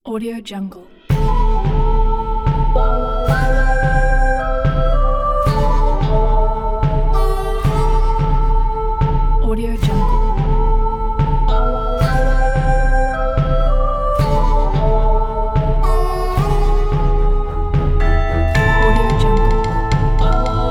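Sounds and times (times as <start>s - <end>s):
spaghetti western music: 1.1s - 20.7s.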